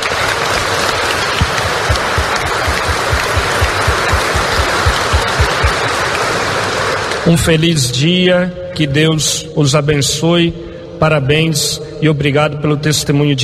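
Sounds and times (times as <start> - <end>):
audience applause: 0.0 - 7.3
speech: 7.3 - 13.4.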